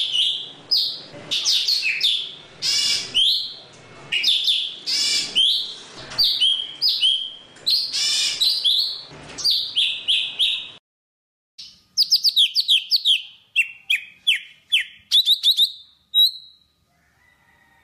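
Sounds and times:
Java sparrow singing: 0.0s - 3.6s, 4.2s - 10.8s, 11.6s - 16.7s.

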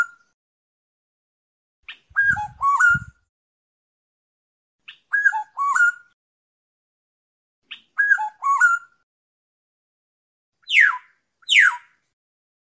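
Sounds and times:
black-naped oriole fluting whistles: 1.9s - 3.2s, 4.9s - 6.1s, 7.7s - 8.9s, 10.6s - 11.9s.

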